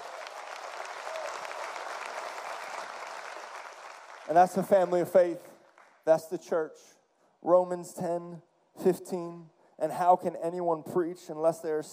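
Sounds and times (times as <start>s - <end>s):
audience applauding: 0.0s - 5.0s
speech: 4.3s - 11.9s.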